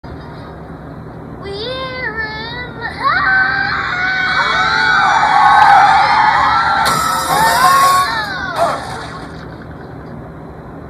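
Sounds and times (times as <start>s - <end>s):
screeching singing voice: 2.7s - 8.9s.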